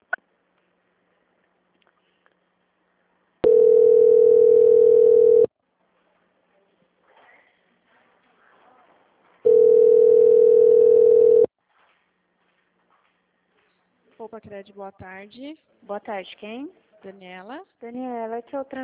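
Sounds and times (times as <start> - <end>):
telephone tone after a transferred call dropped: 3.4 - 5.5, 9.4 - 11.5
speech: 14.3 - 18.8.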